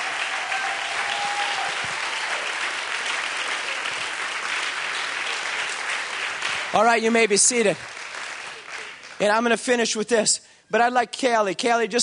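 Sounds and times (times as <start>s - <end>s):
crowd applause: 0.0s - 9.4s
speech: 6.8s - 8.0s, 9.2s - 12.0s.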